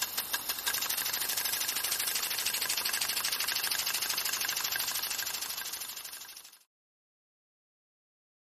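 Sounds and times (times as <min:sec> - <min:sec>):
water sprinkler: 0:00.0 - 0:06.7.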